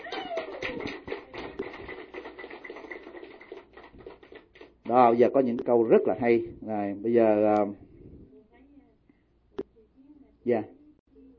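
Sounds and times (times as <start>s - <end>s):
crowd applauding: 0.0s - 4.8s
speech: 4.9s - 7.8s, 10.5s - 10.8s.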